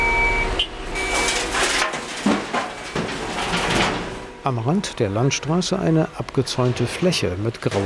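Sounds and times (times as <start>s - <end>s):
dump trucks reversing at a construction site: 0.0s - 7.8s
dump trucks unloading coarse rock: 0.9s - 7.0s
speech: 4.4s - 7.8s.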